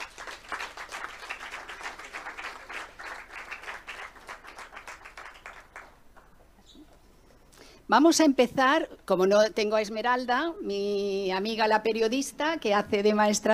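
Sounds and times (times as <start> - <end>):
audience applause: 0.0 - 6.3
speech: 7.9 - 13.5.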